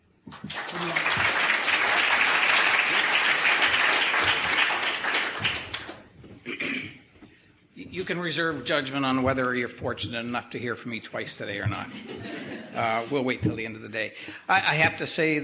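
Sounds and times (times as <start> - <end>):
audience applause welcoming three speakers: 0.3 - 6.1
speech: 8.0 - 15.4
laughter: 11.8 - 13.1.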